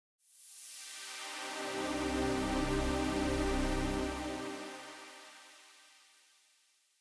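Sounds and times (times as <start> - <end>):
Waldorf synthesizer with 12dB high-pass filter: 0.8 - 5.6.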